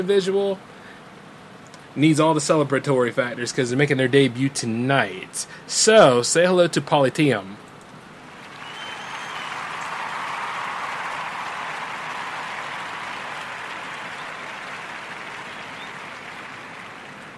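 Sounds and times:
speech: 0.0s - 0.8s, 2.0s - 7.7s
crowd applauding a debut performer: 8.3s - 17.3s.

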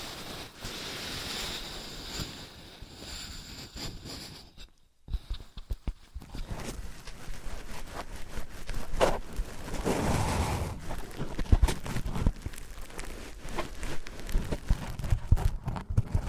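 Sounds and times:
objects of different materials rubbed and handled: 3.5s - 16.2s.

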